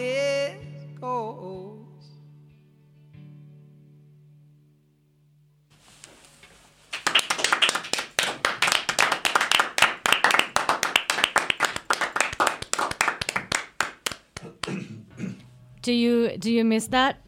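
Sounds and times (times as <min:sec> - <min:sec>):
audience applause: 0:06.9 - 0:14.8
speech: 0:15.9 - 0:17.2.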